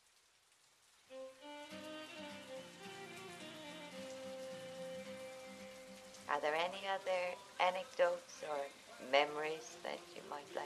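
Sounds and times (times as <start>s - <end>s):
rain falling outside: 0.0s - 10.6s
speech: 6.3s - 10.6s.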